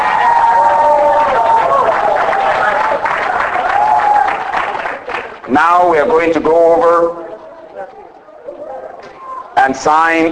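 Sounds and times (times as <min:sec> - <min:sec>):
wedding guests applauding the newlyweds: 0:00.0 - 0:07.0
speech: 0:05.6 - 0:07.2, 0:09.6 - 0:10.3.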